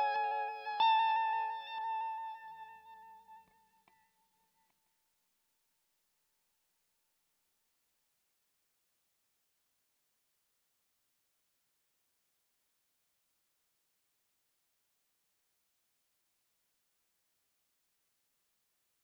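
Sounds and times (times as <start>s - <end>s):
electric guitar: 0.0s - 4.1s.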